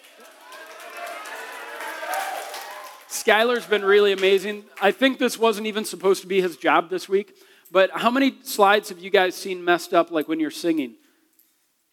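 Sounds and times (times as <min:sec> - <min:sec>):
audience round of applause: 0:00.0 - 0:04.5
speech: 0:03.1 - 0:11.0.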